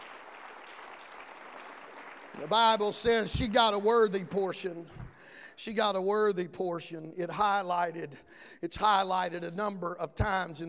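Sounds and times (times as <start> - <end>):
audience hand clapping in praise: 0.0 - 5.4
speech: 2.4 - 5.0, 5.6 - 10.6.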